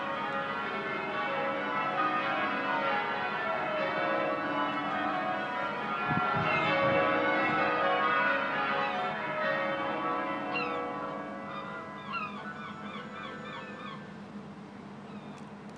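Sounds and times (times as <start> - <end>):
cathedral bells ringing: 0.0 - 14.2
bird: 11.5 - 14.1, 15.0 - 15.5
gull calling: 11.6 - 14.1.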